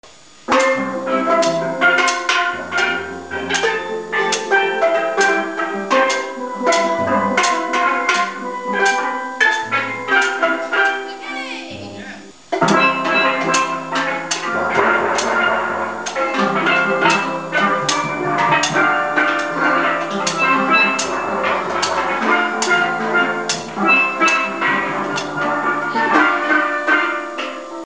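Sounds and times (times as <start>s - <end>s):
steel band: 0.0s - 27.8s.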